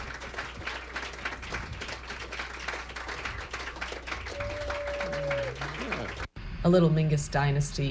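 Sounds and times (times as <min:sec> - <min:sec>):
audience applause at live jazz club: 0:00.0 - 0:06.3
speech: 0:06.6 - 0:07.9.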